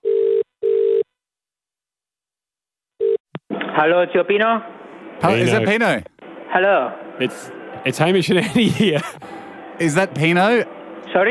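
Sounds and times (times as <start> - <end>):
telephone ringing tone on an outgoing call: 0.0 - 1.1, 3.0 - 3.2
speech: 3.8 - 11.3
laughter: 5.2 - 5.9, 8.3 - 9.4.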